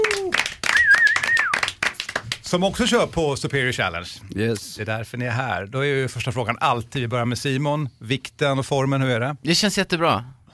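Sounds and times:
audience applause: 0.0s - 2.4s
speech: 2.5s - 10.5s.

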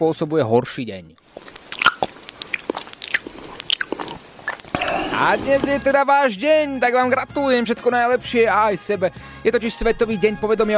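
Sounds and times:
speech: 0.0s - 1.6s, 5.2s - 10.7s
chewing and lip-smacking: 1.2s - 5.9s.

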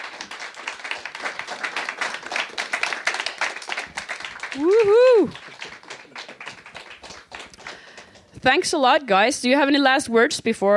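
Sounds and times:
audience applause: 0.0s - 8.3s
speech: 4.6s - 5.4s, 8.4s - 10.7s.

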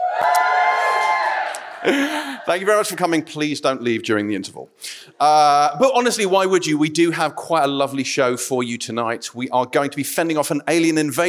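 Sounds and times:
live audience cheering: 0.0s - 3.2s
speech: 0.2s - 0.4s, 1.8s - 11.2s.

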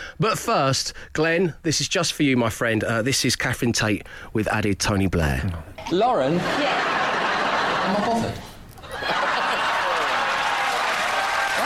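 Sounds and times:
speech: 0.2s - 7.0s, 7.9s - 8.5s
laughter: 6.2s - 11.6s
crowd cheering and applauding: 8.8s - 11.6s.

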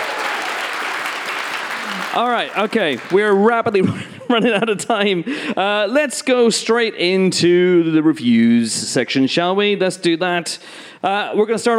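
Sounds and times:
audience applause: 0.0s - 3.6s
speech: 2.1s - 11.7s
laughter: 3.2s - 5.2s.

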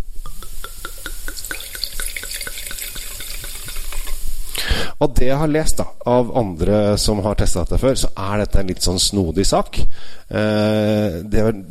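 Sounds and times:
wine pouring into a glass: 0.2s - 4.2s
speech: 5.0s - 11.7s.

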